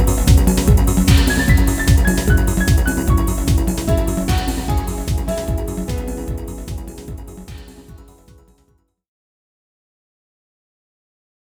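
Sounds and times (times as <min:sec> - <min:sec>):
techno battle music: 0:00.0 - 0:08.4.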